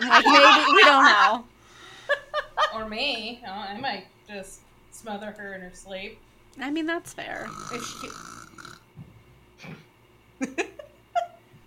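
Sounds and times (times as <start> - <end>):
laughter: 0.0 - 1.4, 2.0 - 2.9
speech: 0.1 - 1.5, 2.8 - 8.7, 10.4 - 10.7
sneeze: 9.6 - 9.9.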